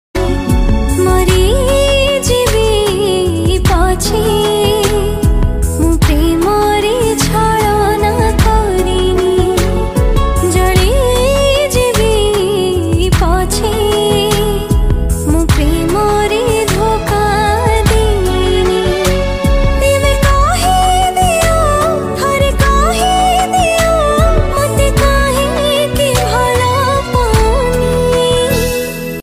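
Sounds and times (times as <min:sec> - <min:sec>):
woman singing: 0:00.2 - 0:29.2.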